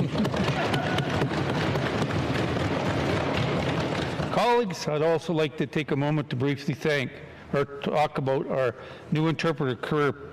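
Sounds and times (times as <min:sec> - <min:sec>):
audience clapping: 0:00.0 - 0:04.7
speech: 0:04.5 - 0:10.3.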